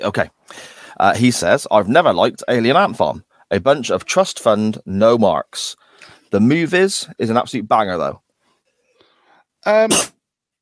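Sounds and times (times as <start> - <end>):
speech: 0.0 - 8.2, 9.6 - 10.2
loud cough: 9.8 - 10.2.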